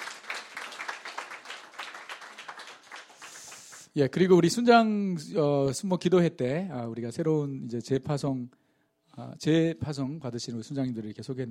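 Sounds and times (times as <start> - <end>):
group applause: 0.0 - 4.0
speech: 4.0 - 8.6, 9.2 - 11.4.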